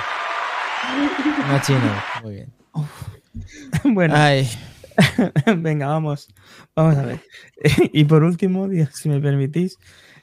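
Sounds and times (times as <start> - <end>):
applause: 0.0 - 2.2
laughter: 0.1 - 2.2
speech: 0.8 - 10.2.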